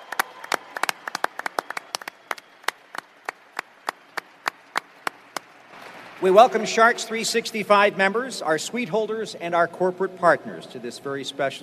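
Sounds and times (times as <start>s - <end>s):
Sharks fans applause: 0.0s - 6.6s
speech: 6.2s - 11.6s.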